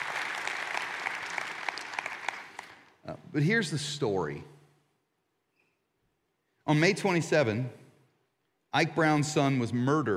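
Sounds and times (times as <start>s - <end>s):
audience applause: 0.0s - 2.9s
speech: 3.1s - 4.5s, 6.7s - 7.8s, 8.7s - 10.1s.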